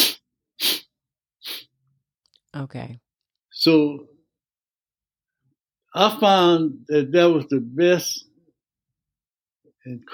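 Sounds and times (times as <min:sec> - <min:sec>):
sniffing in-breath through the nose: 0:00.0 - 0:01.7
speech: 0:02.6 - 0:04.2, 0:06.0 - 0:08.3, 0:09.8 - 0:10.1.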